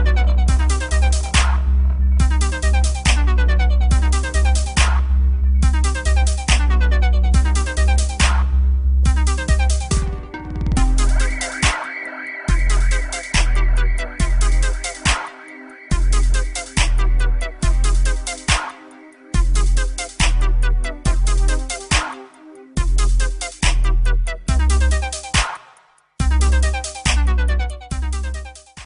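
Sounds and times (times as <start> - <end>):
Zumba dubstep music: 0.0 - 28.8.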